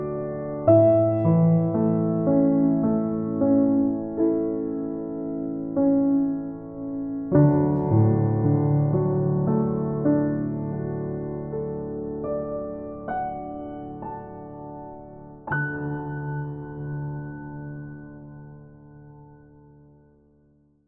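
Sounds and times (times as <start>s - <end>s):
calm soft piano music: 0.0s - 20.8s.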